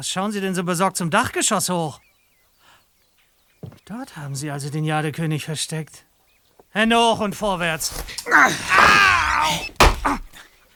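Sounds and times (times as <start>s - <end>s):
speech: 0.0s - 2.1s, 3.8s - 6.1s, 6.7s - 10.2s
door slammed against a man's head: 7.4s - 10.4s.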